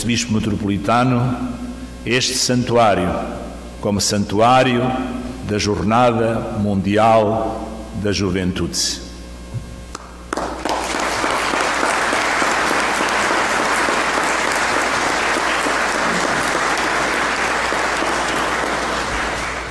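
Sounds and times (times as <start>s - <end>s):
speech: 0.0s - 9.0s
audience applause: 10.3s - 19.6s.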